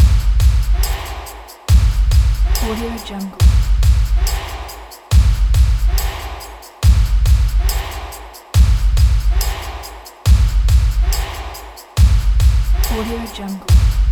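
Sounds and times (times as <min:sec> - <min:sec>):
sport drum loop: 0:00.0 - 0:14.1.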